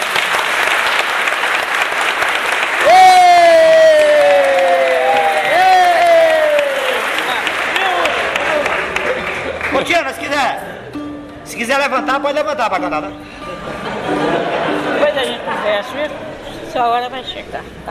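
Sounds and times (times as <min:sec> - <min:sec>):
audience applause: 0:00.0 - 0:10.4
speech: 0:11.7 - 0:17.8
laughter: 0:13.3 - 0:16.6.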